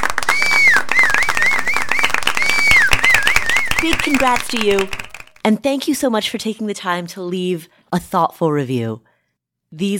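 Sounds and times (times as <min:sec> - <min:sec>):
round of applause: 0:00.0 - 0:05.4
high wavering whistle: 0:00.3 - 0:05.3
speech: 0:04.1 - 0:09.1, 0:09.7 - 0:09.9.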